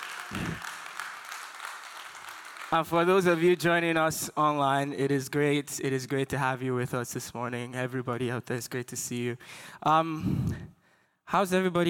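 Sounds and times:
audience clapping: 0.0 - 3.9
speech: 2.7 - 10.7, 11.3 - 11.8.

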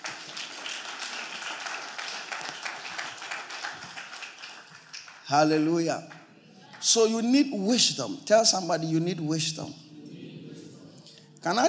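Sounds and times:
audience clapping: 0.0 - 7.3
speech: 5.3 - 6.2, 6.8 - 9.8, 11.4 - 11.6.

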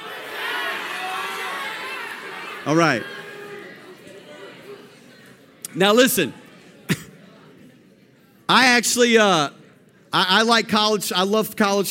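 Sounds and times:
audience yelling out their college teams: 0.0 - 4.5
speech: 2.6 - 3.2, 5.8 - 6.4, 8.8 - 11.8.

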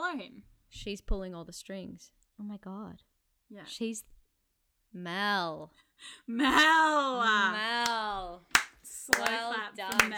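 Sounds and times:
speech: 0.1 - 4.1, 4.9 - 10.1
slow hand clapping: 7.8 - 10.1.

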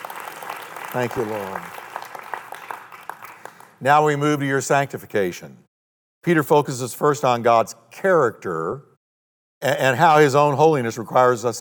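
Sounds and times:
crowd applauding: 0.0 - 3.8
speech: 0.9 - 1.8, 3.8 - 5.6, 6.2 - 8.9, 9.6 - 11.5.

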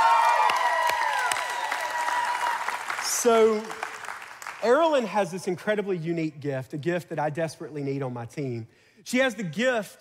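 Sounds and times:
audience applause and cheering: 0.0 - 5.0
speech: 3.2 - 3.8, 4.6 - 9.9.

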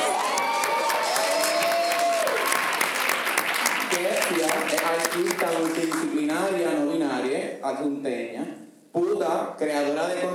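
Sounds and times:
cheers and whoops: 0.0 - 3.2
audience applause: 0.0 - 6.2
speech: 5.0 - 8.6, 9.2 - 10.3.

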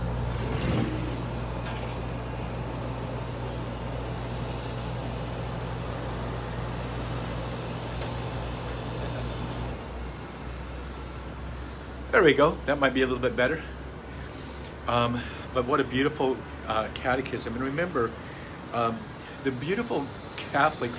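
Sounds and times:
air conditioner running: 0.0 - 20.9
speech: 12.2 - 13.8, 14.9 - 20.9.

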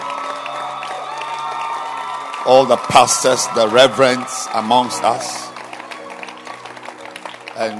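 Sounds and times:
whoops and shouts: 0.0 - 5.5
audience clapping and cheering: 0.0 - 7.7
speech: 2.4 - 5.5, 7.6 - 7.7.

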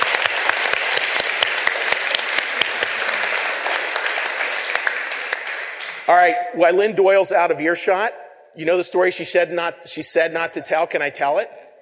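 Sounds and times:
crowd clapping: 0.0 - 6.3
speech: 6.1 - 11.6.

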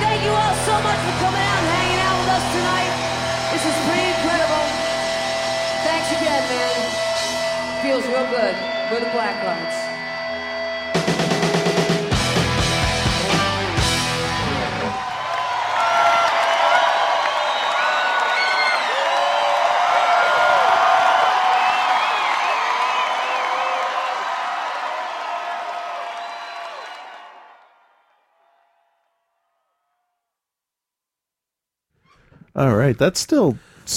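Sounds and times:
loud band music: 0.0 - 9.9, 10.8 - 15.0
large crowd cheering, applauding and whooping: 0.0 - 29.2
speech: 8.2 - 9.8, 32.6 - 33.9.

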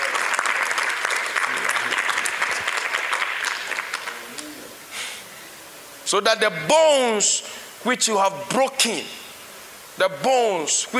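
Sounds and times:
crowd clapping: 0.0 - 4.6
speech: 6.1 - 9.2, 10.0 - 10.9.

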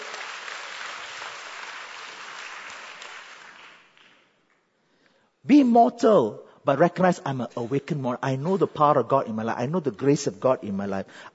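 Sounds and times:
audience clapping: 0.0 - 4.7
speech: 5.4 - 11.3.

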